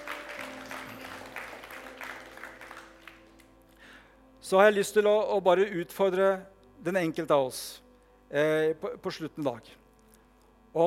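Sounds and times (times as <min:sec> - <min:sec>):
audience applause: 0:00.0 - 0:03.6
speech: 0:04.5 - 0:09.8.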